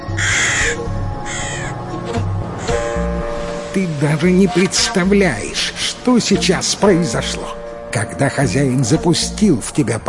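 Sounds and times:
crow cawing: 0.0 - 1.8, 2.6 - 2.8
soft steady music: 0.0 - 10.0
speech: 3.8 - 10.0.

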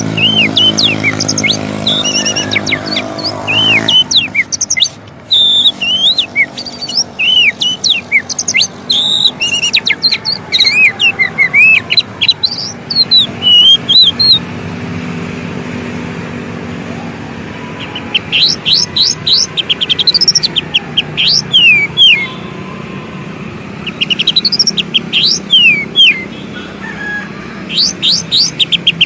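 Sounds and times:
Oriental magpie-robin singing: 0.0 - 14.5, 17.8 - 22.4, 23.8 - 26.5, 27.6 - 29.0.

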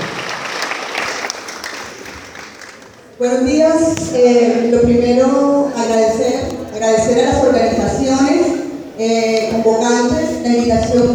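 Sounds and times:
audience clapping to welcome a speaker: 0.0 - 3.2
speech: 3.2 - 11.1.

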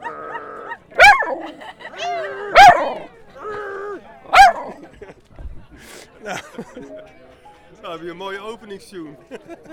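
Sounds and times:
dog barking: 0.0 - 1.5, 2.5 - 3.1, 4.3 - 4.8
laughter: 0.7 - 7.4, 9.1 - 9.7
speech: 6.6 - 9.7.

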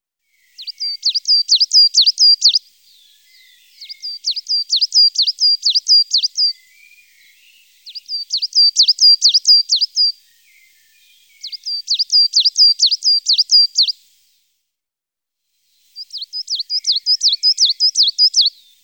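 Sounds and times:
coal tit singing: 0.6 - 2.6, 3.7 - 6.5, 7.8 - 10.1, 11.4 - 13.9, 16.0 - 18.6.

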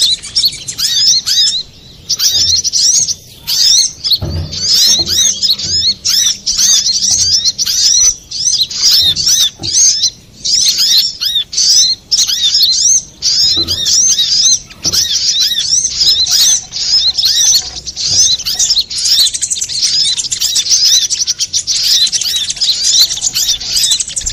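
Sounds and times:
little spiderhunter chirping: 0.0 - 24.3
soft low knocks: 0.7 - 10.5, 13.0 - 18.9.

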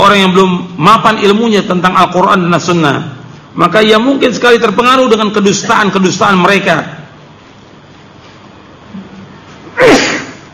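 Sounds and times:
speech: 0.1 - 7.0
person sneezing: 9.7 - 10.5.

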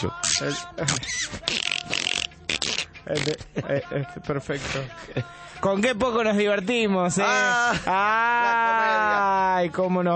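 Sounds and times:
speech: 0.0 - 2.3, 3.0 - 10.1
person imitating a dolphin: 0.0 - 3.4.

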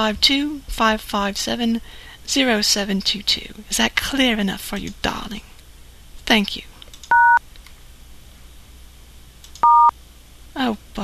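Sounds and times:
speech: 0.0 - 5.5, 6.3 - 6.7, 10.6 - 11.0
telephone keypad tones: 7.1 - 7.4, 9.6 - 9.9.

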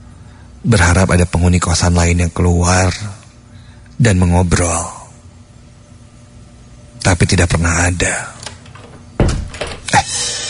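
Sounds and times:
quiet hiss: 0.0 - 10.4
speech: 0.6 - 3.2, 4.0 - 5.0, 7.0 - 8.4
door in a boarding house room opening and closing: 8.3 - 10.1.

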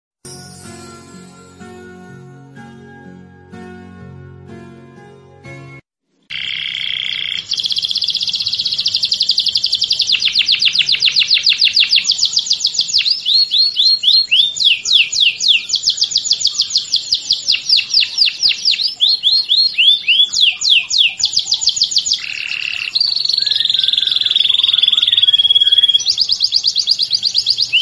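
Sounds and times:
Belgian canary singing: 6.3 - 27.8.

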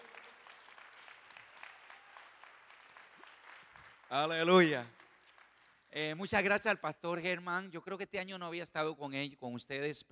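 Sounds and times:
church audience applauding at a morning service: 0.0 - 6.6
speech: 4.1 - 5.0, 6.0 - 10.0.

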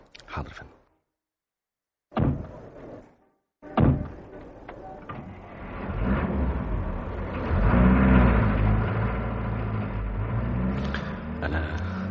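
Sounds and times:
speech: 0.4 - 0.8
luxury car engine driving off: 4.1 - 12.0.

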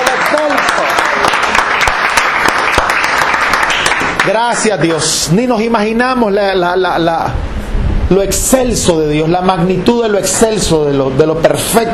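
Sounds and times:
church congregation applause: 0.0 - 5.0
speech: 4.3 - 7.5, 8.1 - 11.9.

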